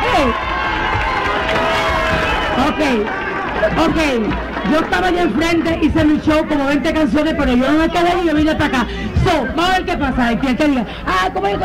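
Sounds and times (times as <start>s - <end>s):
crowd applause: 0.0s - 9.0s
speech: 2.8s - 11.6s.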